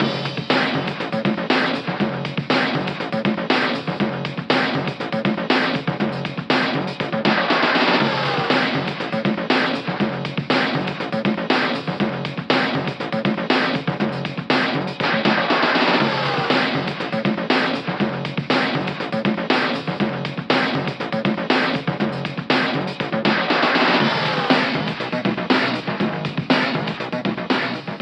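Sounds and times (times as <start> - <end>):
boombox music loop: 0.0 - 28.0.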